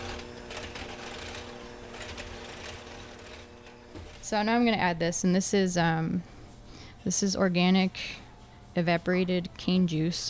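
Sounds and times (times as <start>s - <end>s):
electric hand mixer mixing water, spice and persimmon: 0.0s - 4.3s
speech: 4.3s - 6.3s, 7.0s - 8.2s, 8.8s - 10.2s.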